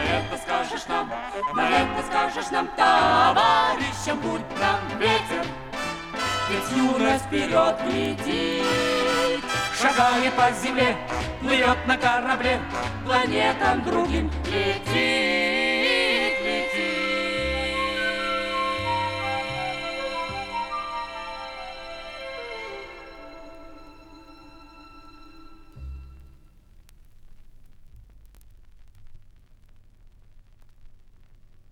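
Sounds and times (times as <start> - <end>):
vocal quartet singing: 0.0 - 24.1.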